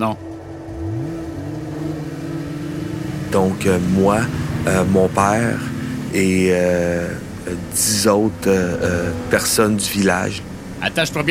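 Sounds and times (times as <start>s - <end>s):
speech: 0.0s - 0.2s, 3.3s - 11.2s
about a dozen snowmobile engines setting out on a fishing trip: 0.0s - 11.2s.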